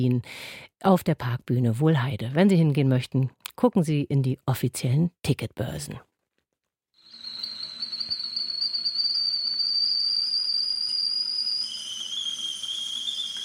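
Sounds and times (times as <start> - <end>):
speech: 0.0 - 6.1
tea kettle whistling: 7.0 - 13.4.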